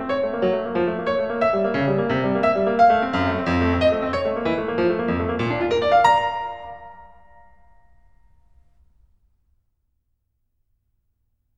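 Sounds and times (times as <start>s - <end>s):
keyboard partita gigue: 0.1s - 7.6s.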